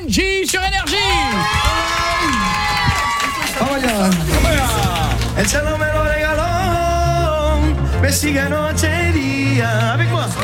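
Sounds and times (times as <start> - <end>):
studio audience on a live show cheering, shouting and clapping: 0.0 - 6.9
speech: 0.1 - 0.7, 5.4 - 6.1, 8.1 - 10.4
individual voices whooping above the crowd: 0.6 - 5.3.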